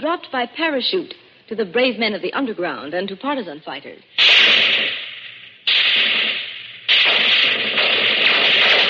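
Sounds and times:
speech: 0.0 - 4.6
World War II Bren light automatic gun firing bursts: 4.2 - 8.8.

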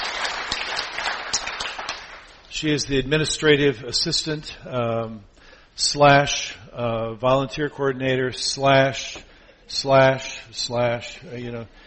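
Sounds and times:
audience applause: 0.0 - 2.3
speech: 2.6 - 11.8.

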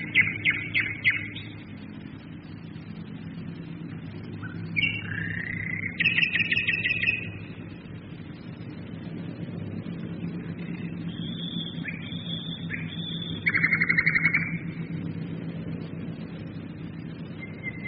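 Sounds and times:
nightingale song: 0.0 - 1.8, 4.4 - 7.4, 10.6 - 14.8, 17.3 - 17.8
aircraft engines droning: 0.0 - 17.8.

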